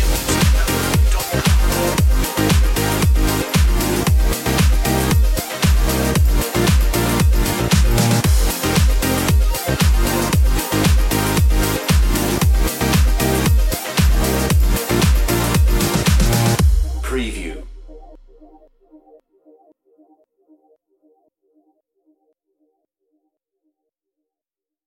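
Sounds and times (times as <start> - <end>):
groovy underscore music: 0.0 - 19.2.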